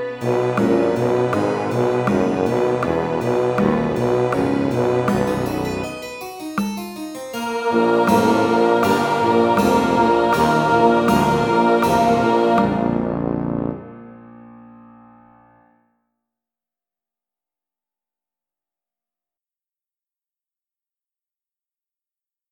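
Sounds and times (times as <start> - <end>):
bass trombone playing intervals: 0.1 - 5.9, 7.6 - 14.9.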